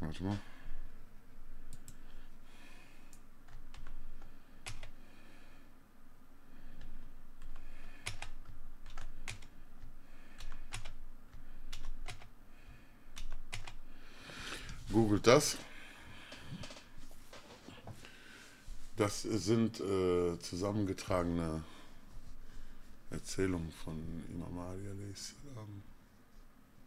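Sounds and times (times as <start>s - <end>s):
speech: 0.1s - 0.5s, 15.1s - 15.7s, 19.0s - 21.7s, 23.3s - 25.9s
computer keyboard typing: 3.5s - 5.0s, 6.8s - 9.6s, 10.3s - 12.3s, 13.1s - 13.8s.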